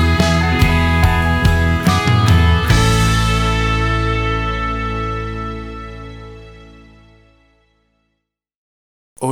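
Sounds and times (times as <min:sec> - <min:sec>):
slow acoustic country romance ballad: 0:00.0 - 0:07.3.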